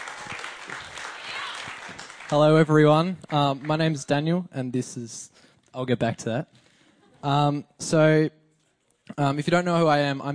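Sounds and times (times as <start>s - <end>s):
audience applause: 0.0s - 3.8s
speech: 2.3s - 6.6s, 7.2s - 8.4s, 9.1s - 10.3s.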